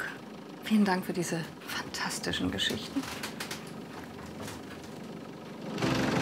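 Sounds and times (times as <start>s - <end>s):
old bus engine idling: 0.0s - 6.2s
speech: 0.7s - 3.3s.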